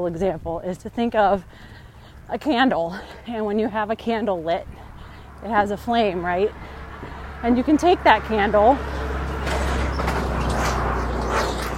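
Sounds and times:
speech: 0:00.0 - 0:04.8, 0:05.4 - 0:09.0
truck driving past outside: 0:05.0 - 0:11.7.

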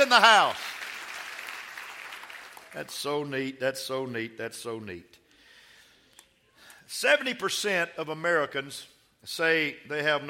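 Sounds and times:
speech: 0:00.0 - 0:00.7, 0:02.8 - 0:05.2, 0:06.9 - 0:10.2
audience clapping: 0:00.0 - 0:03.0.

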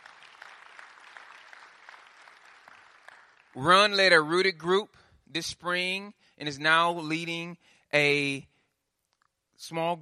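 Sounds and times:
audience applause: 0:00.0 - 0:03.6
speech: 0:03.6 - 0:08.5, 0:09.6 - 0:09.9.

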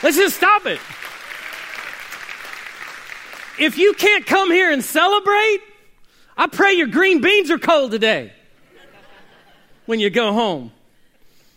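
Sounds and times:
speech: 0:00.0 - 0:01.1, 0:03.6 - 0:05.7, 0:06.4 - 0:08.4, 0:09.9 - 0:10.8
audience applause in church: 0:00.0 - 0:04.0
laughter: 0:08.6 - 0:09.9.

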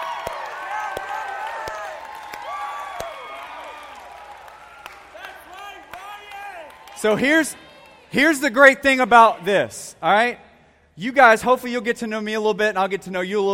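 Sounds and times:
audience applause: 0:00.0 - 0:08.1
speech: 0:07.0 - 0:10.4, 0:11.0 - 0:13.5.

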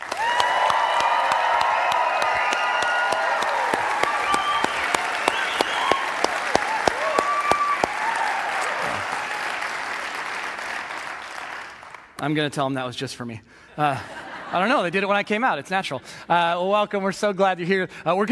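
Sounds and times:
audience applauding and cheering: 0:00.0 - 0:12.2
speech: 0:12.2 - 0:18.3
laughter: 0:13.8 - 0:15.2.

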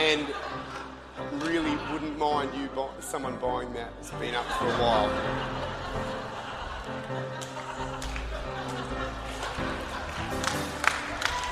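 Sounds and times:
laughter: 0:00.0 - 0:11.5
speech: 0:02.0 - 0:06.3, 0:06.9 - 0:09.1
audience clapping: 0:06.7 - 0:11.5.

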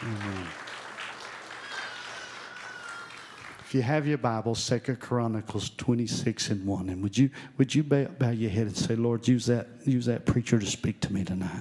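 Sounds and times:
audience hand clapping: 0:00.0 - 0:04.0
speech: 0:03.7 - 0:11.6.

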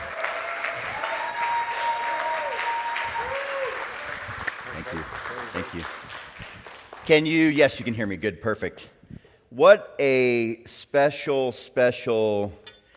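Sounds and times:
church audience applause for a pastor: 0:00.0 - 0:07.6
speech: 0:07.1 - 0:09.0, 0:09.6 - 0:12.6.

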